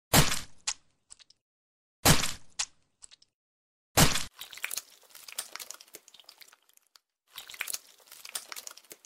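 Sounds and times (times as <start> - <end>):
acid splash: 4.0 - 9.0.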